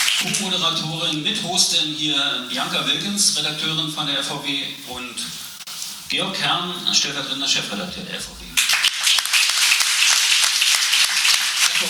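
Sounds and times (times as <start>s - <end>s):
speech: 0.2s - 5.4s, 6.1s - 8.7s
audience applause: 8.6s - 11.8s.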